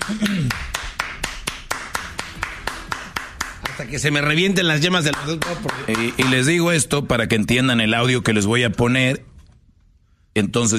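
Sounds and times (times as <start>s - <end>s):
applause, hand clapping: 0.0s - 6.7s
speech: 0.1s - 0.7s, 3.8s - 9.3s, 10.4s - 10.7s.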